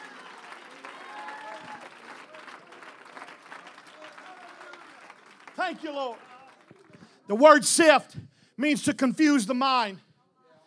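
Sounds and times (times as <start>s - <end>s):
audience clapping: 0.0s - 7.4s
speech: 5.6s - 6.3s, 7.3s - 10.0s.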